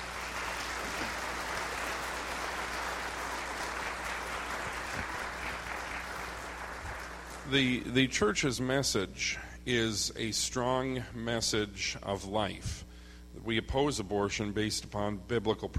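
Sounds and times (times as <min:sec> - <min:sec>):
crowd round of applause: 0:00.0 - 0:07.8
speech: 0:07.5 - 0:12.8, 0:13.4 - 0:15.7.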